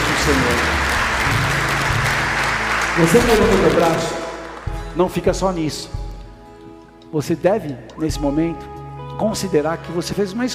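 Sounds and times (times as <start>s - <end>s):
audience applauding: 0.0s - 5.1s
speech: 0.2s - 1.4s, 3.0s - 4.2s, 5.0s - 6.0s, 7.1s - 10.5s.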